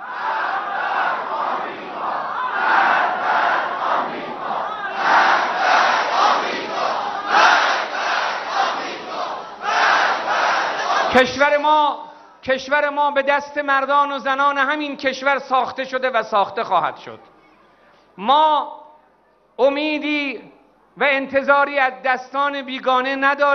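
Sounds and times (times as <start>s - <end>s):
large crowd chanting a slogan in unison: 0.0s - 11.3s
speech: 11.2s - 17.3s, 18.2s - 18.8s, 19.6s - 23.5s.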